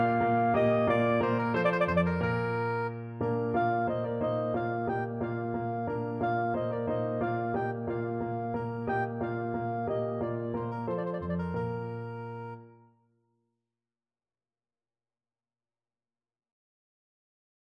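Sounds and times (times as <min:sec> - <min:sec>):
soprano saxophone: 0:00.0 - 0:12.9.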